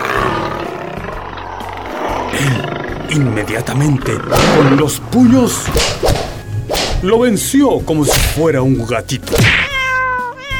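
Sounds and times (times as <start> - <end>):
lion roaring: 0.0 - 5.7
speech: 2.4 - 6.1, 7.0 - 9.7.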